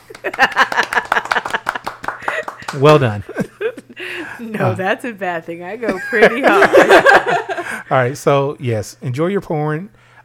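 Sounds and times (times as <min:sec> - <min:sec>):
applause from a few people: 0:00.0 - 0:03.2
laughter: 0:00.1 - 0:04.7, 0:05.9 - 0:07.9
speech: 0:00.2 - 0:01.2, 0:02.8 - 0:03.4, 0:04.6 - 0:10.0.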